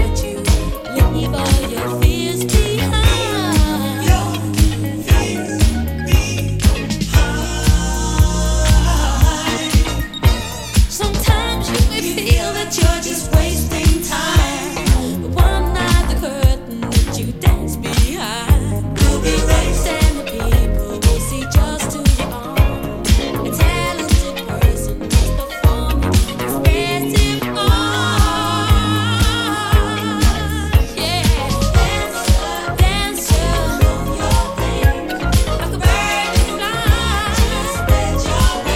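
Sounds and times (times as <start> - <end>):
vocal mix music: 0.0 - 38.7.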